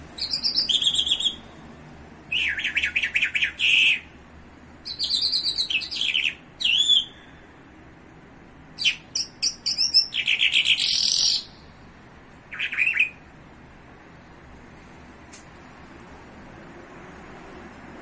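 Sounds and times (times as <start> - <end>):
bimaculated lark song: 0.0 - 1.6, 2.3 - 7.4, 8.8 - 11.8, 12.5 - 13.3.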